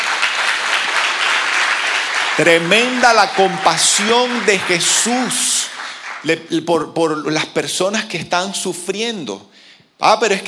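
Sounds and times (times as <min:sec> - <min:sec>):
audience applause: 0:00.0 - 0:06.4
speech: 0:02.4 - 0:05.6, 0:06.2 - 0:10.4.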